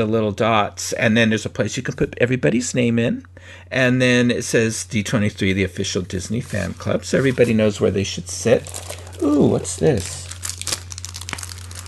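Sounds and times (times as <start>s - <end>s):
speech: 0.0s - 10.3s
foil package of Mylar balloons crinkling: 7.3s - 11.8s.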